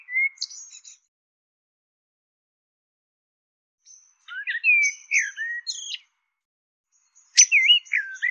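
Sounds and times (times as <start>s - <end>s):
bird twittering chirps: 0.0s - 1.1s, 3.8s - 6.0s, 6.9s - 8.2s.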